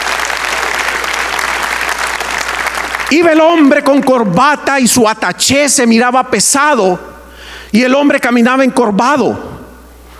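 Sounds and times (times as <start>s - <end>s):
audience applause: 0.0s - 4.6s
speech: 3.1s - 9.5s.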